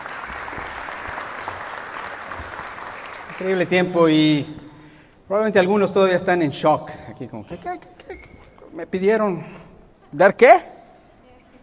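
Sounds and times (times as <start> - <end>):
congregation applauding the choir at a church service: 0.0 - 4.5
speech: 3.4 - 4.6, 5.3 - 10.7.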